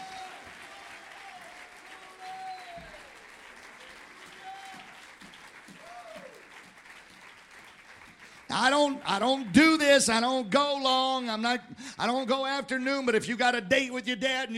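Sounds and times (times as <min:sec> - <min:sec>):
audience clapping hands: 0:00.0 - 0:10.3
speech: 0:08.5 - 0:14.5.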